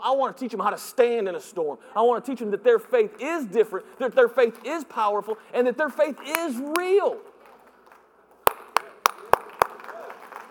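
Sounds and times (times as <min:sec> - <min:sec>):
speech: 0:00.1 - 0:07.3
preacher clapping for himself: 0:07.9 - 0:10.4.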